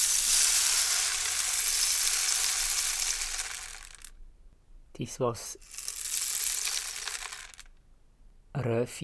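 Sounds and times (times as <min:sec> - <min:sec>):
rainstick: 0:00.0 - 0:04.1, 0:05.6 - 0:07.7
speech: 0:05.0 - 0:05.8, 0:08.6 - 0:09.0.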